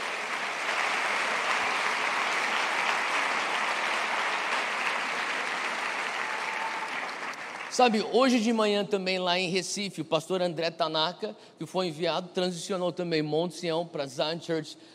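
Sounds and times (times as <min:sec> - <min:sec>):
audience applause: 0:00.0 - 0:08.4
speech: 0:07.8 - 0:14.9.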